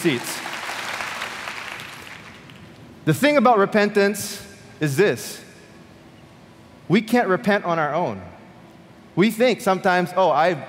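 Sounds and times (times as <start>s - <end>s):
speech: 0.0s - 0.5s, 3.1s - 5.4s, 6.9s - 8.4s, 9.2s - 10.6s
audience clapping: 0.0s - 2.7s.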